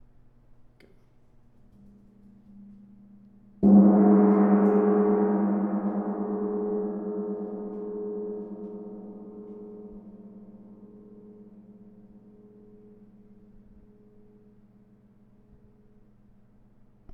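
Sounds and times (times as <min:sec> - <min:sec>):
gong: 0:02.2 - 0:15.9.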